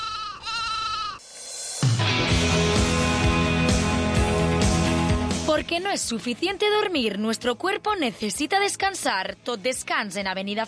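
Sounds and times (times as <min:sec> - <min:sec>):
sheep bleating: 0:00.0 - 0:01.2
music with a bouncy bass line: 0:01.8 - 0:05.9
speech: 0:05.6 - 0:10.6.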